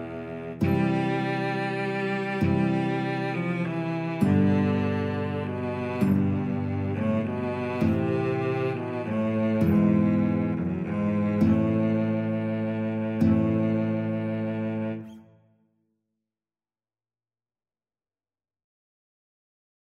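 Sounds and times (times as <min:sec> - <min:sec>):
guitar in a duet: 0:00.0 - 0:15.4
cello in a duet: 0:00.0 - 0:15.5.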